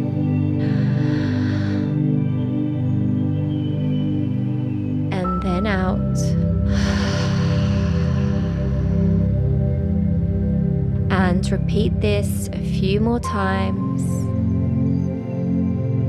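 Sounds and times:
steady sustained low tonal drone: 0.0s - 16.0s
deep breathing during a guided beach-visualisation meditation: 0.5s - 2.8s, 6.4s - 11.1s
speech: 11.5s - 13.9s.

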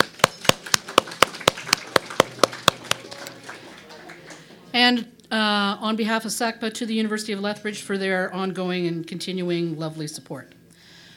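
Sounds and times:
audience applause: 0.0s - 4.7s
speech: 4.9s - 10.6s.

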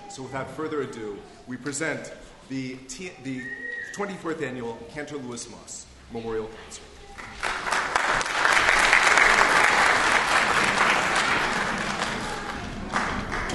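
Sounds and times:
speech: 0.2s - 7.4s
audience applause: 7.2s - 13.5s.

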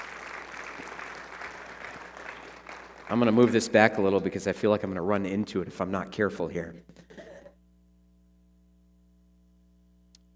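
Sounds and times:
crowd clapping: 0.0s - 5.2s
speech: 3.1s - 7.0s.

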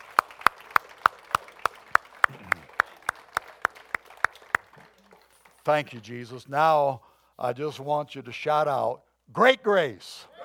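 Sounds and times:
audience clapping: 0.0s - 6.3s
speech: 5.7s - 10.3s.

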